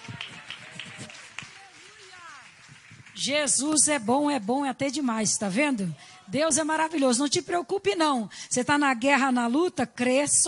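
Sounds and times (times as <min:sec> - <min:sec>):
audience clapping in rhythm: 0:00.0 - 0:05.5
speech: 0:03.2 - 0:10.4.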